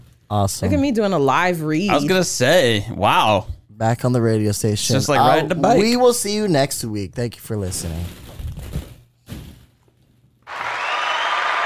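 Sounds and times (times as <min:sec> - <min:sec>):
speech: 0:00.3 - 0:08.2
delayed applause: 0:10.5 - 0:11.6.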